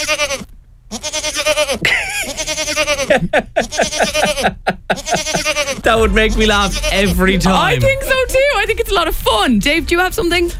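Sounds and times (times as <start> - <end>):
goats bleating: 0.0 - 7.1
laughter: 1.8 - 8.5
speech: 3.2 - 3.5, 4.4 - 10.5.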